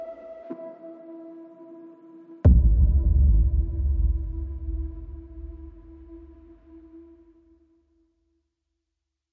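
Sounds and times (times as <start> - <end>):
aggressive modern action trailer music: 2.5 - 7.0.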